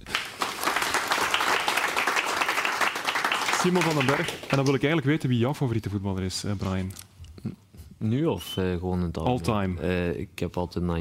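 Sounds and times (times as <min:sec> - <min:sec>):
audience applause: 0:00.0 - 0:05.0
speech: 0:03.6 - 0:10.9.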